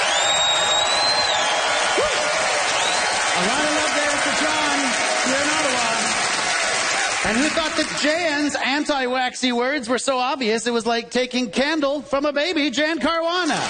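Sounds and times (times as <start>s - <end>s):
cheers and whoops: 0.0s - 7.8s
audience applause: 0.0s - 8.6s, 13.4s - 13.6s
speech: 7.3s - 13.6s.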